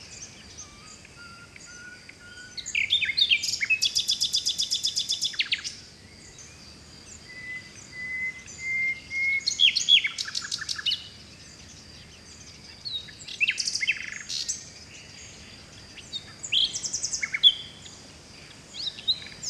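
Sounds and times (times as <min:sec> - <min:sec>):
forest birds singing: 0:00.0 - 0:19.4.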